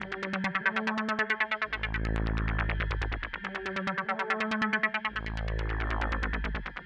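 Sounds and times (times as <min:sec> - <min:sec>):
space synth pad: 0:00.0 - 0:06.8.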